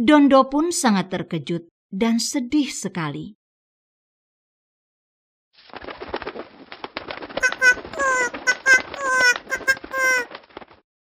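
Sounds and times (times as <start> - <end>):
speech: 0.0 - 3.4
bird call: 7.4 - 10.3.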